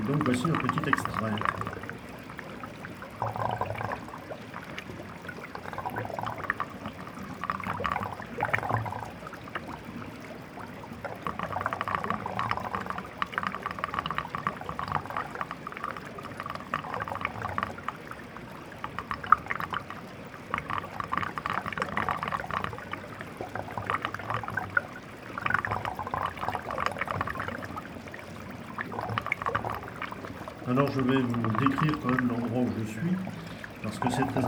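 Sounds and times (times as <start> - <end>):
water trickling over ice: 0.0 - 34.4
speech: 0.1 - 1.8, 3.2 - 3.6, 30.9 - 34.4.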